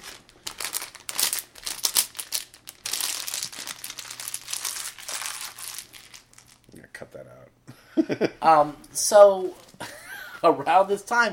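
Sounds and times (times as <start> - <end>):
plastic crinkling and crackling: 0.0 - 6.8
speech: 7.1 - 9.6, 10.4 - 11.3.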